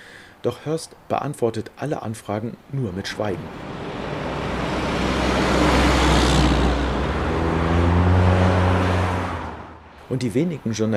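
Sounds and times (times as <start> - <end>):
speech: 0.4 - 3.8, 10.1 - 10.9
low engine rumble: 3.3 - 8.3
busy traffic on Elliott Avenue in Seattle: 3.3 - 10.1.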